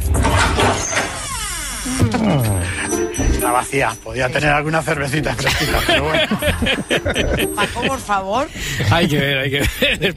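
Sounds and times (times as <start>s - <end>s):
refrigerator door opening: 0.0s - 2.5s
speech: 1.8s - 10.1s
laughter: 5.3s - 10.1s.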